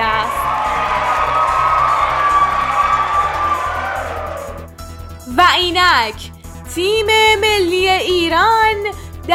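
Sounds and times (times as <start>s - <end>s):
huge stadium crowd roaring and cheering: 0.0s - 4.7s
speech: 6.0s - 9.3s.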